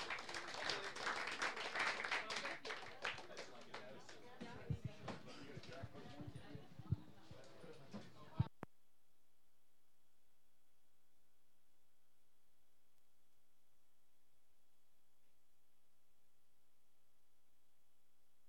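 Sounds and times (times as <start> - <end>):
audience applause welcoming a guest singer onto a stage: 0.0 - 6.4.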